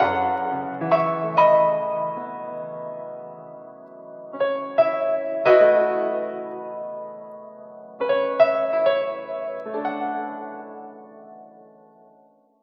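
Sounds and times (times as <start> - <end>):
sad piano loop: 0.0 - 12.4.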